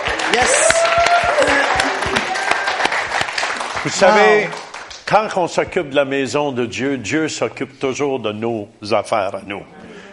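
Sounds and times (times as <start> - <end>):
audience applause: 0.0 - 5.1
speech: 0.4 - 0.6, 3.8 - 10.0.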